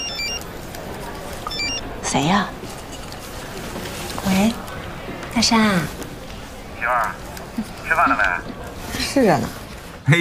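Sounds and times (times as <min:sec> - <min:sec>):
phone ringtone: 0:00.0 - 0:00.4, 0:01.4 - 0:01.9
murmur: 0:00.0 - 0:10.2
speech: 0:02.1 - 0:02.7, 0:04.3 - 0:04.6, 0:05.4 - 0:06.0, 0:06.8 - 0:08.5, 0:09.2 - 0:10.2.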